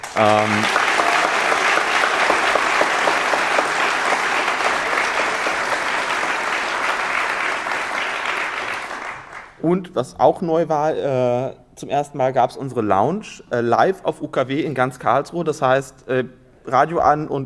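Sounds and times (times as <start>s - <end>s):
audience applause: 0.0s - 9.6s
speech: 0.2s - 0.8s, 9.6s - 17.4s.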